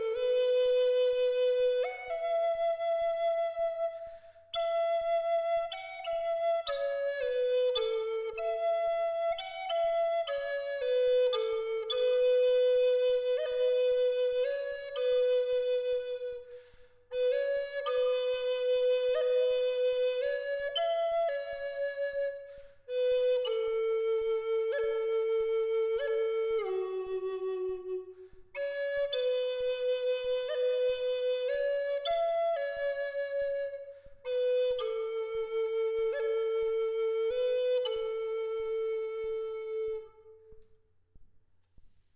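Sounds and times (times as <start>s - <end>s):
maple branch flute in G tuned to 432 Hz: 0.0s - 40.9s.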